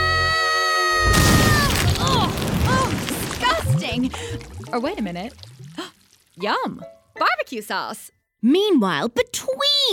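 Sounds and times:
cartoon barbecue grill exploding with a loud boom: 0:01.1 - 0:05.0
speech: 0:04.0 - 0:05.5, 0:06.4 - 0:09.9.

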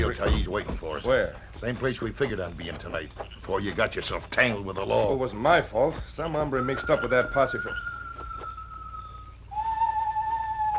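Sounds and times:
speech: 0:00.0 - 0:08.0
low rumbling background: 0:00.0 - 0:10.7
whistled bird call: 0:06.5 - 0:10.7.

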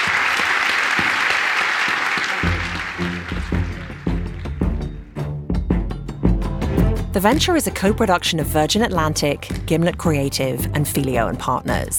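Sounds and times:
audience applause: 0:00.0 - 0:05.0
punchy music with steady beats: 0:02.4 - 0:11.9
speech: 0:07.2 - 0:11.9.

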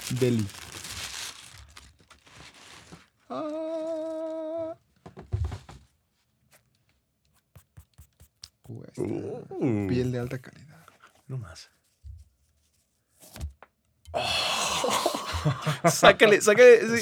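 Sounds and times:
paper crinkling as sneakers are unboxed: 0:00.0 - 0:04.3
speech: 0:00.1 - 0:00.6, 0:03.3 - 0:03.6, 0:09.0 - 0:10.6, 0:11.3 - 0:11.8, 0:15.4 - 0:17.0
laughter: 0:14.6 - 0:17.0.

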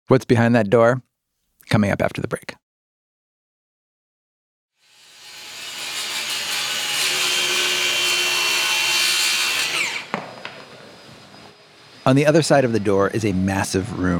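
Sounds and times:
speech: 0:00.1 - 0:01.1, 0:01.7 - 0:02.6, 0:12.1 - 0:14.1
power saw cutting wood: 0:04.8 - 0:10.4.

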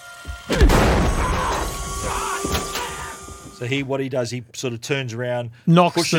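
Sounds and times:
speech: 0:00.5 - 0:00.8, 0:03.6 - 0:06.1
gunshot: 0:00.5 - 0:01.7.

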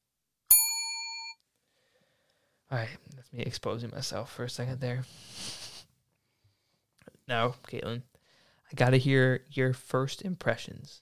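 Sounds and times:
bell ding: 0:00.5 - 0:01.4
speech: 0:02.7 - 0:05.6, 0:07.3 - 0:08.1, 0:08.7 - 0:11.0.

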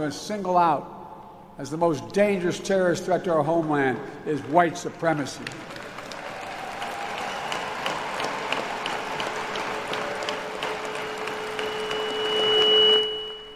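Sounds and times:
speech: 0:00.0 - 0:01.0, 0:01.6 - 0:05.8
sparse polite golf clap from small audience: 0:03.5 - 0:13.4.

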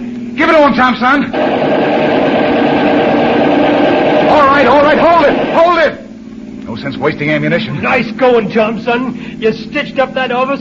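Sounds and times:
speech: 0:00.6 - 0:01.9, 0:04.6 - 0:06.0, 0:06.8 - 0:10.5
car engine running: 0:01.4 - 0:06.0.

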